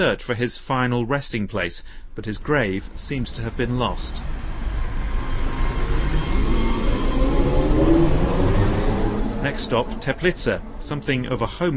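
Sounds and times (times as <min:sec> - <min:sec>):
speech: 0:00.0 - 0:04.4, 0:09.4 - 0:11.7
trolley buses passing in Teplice, North Bohemia: 0:02.4 - 0:11.7.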